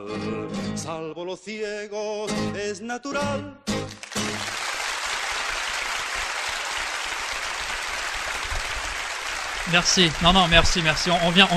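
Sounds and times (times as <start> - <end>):
speech: 0.0 - 4.4, 9.7 - 11.5
audience applause: 3.9 - 11.5.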